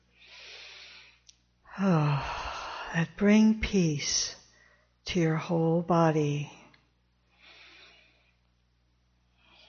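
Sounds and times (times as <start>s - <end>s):
deep centering breaths during a guided meditation: 0.0s - 3.0s, 4.5s - 5.0s, 7.2s - 8.6s, 9.2s - 9.6s
speech: 1.8s - 4.4s, 5.1s - 6.6s.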